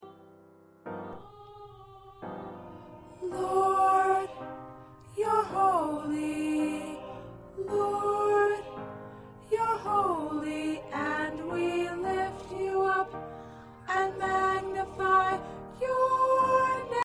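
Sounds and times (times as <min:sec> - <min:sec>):
choir with soprano: 0:00.0 - 0:17.0.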